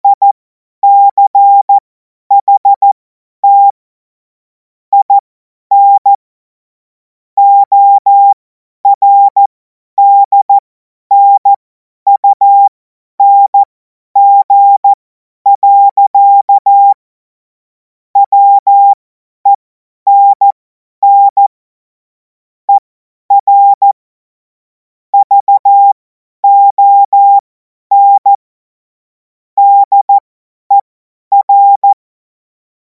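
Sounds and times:
CW Morse code beeps: 0.1 - 3.8, 4.9 - 6.2, 7.4 - 17.0, 18.2 - 21.5, 22.7 - 24.0, 25.2 - 28.4, 29.6 - 32.0.

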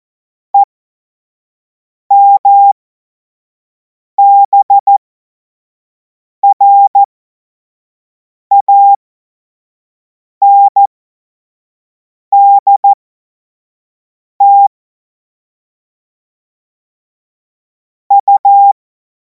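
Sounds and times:
CW Morse code beeps: 2.1 - 2.8, 4.2 - 5.0, 6.4 - 7.1, 8.5 - 9.0, 10.4 - 10.9, 12.4 - 13.0, 14.4 - 14.7, 18.1 - 18.8.

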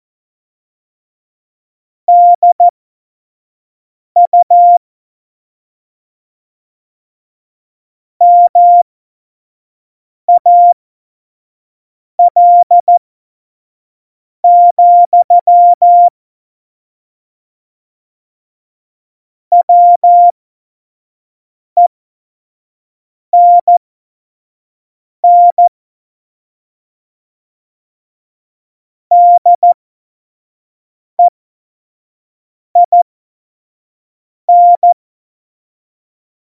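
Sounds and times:
Morse code course beeps: 2.1 - 2.7, 4.2 - 4.8, 8.2 - 8.8, 10.4 - 10.8, 12.2 - 13.0, 14.5 - 16.1, 19.5 - 20.3, 23.4 - 23.8, 25.2 - 25.7, 29.1 - 29.8, 32.8 - 33.0, 34.5 - 35.0.

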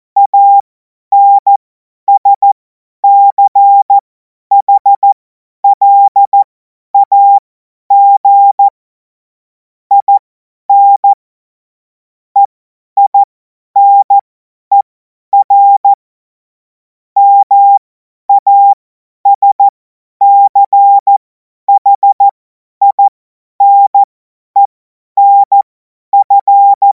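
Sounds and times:
CW Morse code beeps: 0.2 - 8.7, 9.9 - 11.2, 12.4 - 16.0, 17.2 - 25.6, 26.2 - 26.9.

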